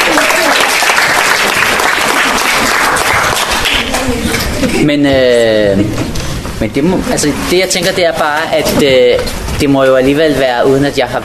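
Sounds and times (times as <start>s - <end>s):
audience applause: 0.0s - 4.3s
speech: 4.8s - 6.0s, 6.6s - 11.2s.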